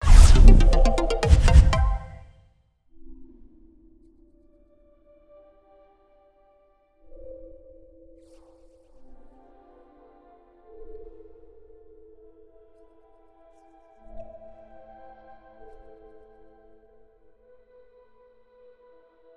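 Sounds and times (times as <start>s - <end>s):
menu level complete jingle: 0.0s - 2.3s.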